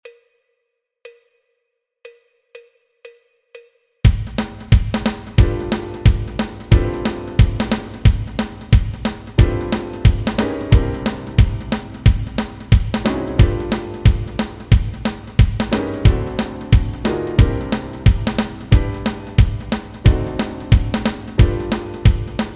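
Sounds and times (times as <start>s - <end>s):
walking bass backing track: 5.4s - 22.5s.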